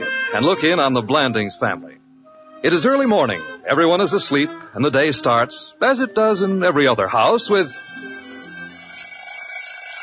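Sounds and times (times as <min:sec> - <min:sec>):
speech: 0:00.3 - 0:02.0, 0:02.6 - 0:08.3
alarm clock ringing: 0:07.2 - 0:10.0.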